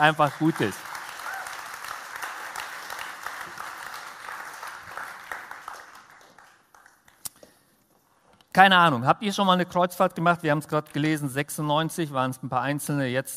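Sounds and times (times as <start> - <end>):
speech: 0.0 - 0.9, 8.6 - 13.3
audience applause: 0.0 - 7.1.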